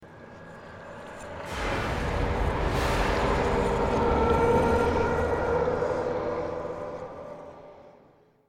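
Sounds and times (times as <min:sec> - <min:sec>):
long swelling stinger: 0:00.1 - 0:08.4.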